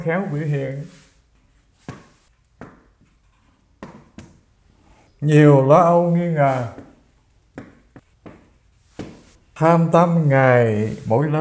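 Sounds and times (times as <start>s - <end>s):
speech: 0.0s - 1.0s, 5.2s - 6.9s, 9.6s - 11.3s
pen scratching on paper writing a translation by hand: 1.4s - 4.2s, 5.9s - 9.5s.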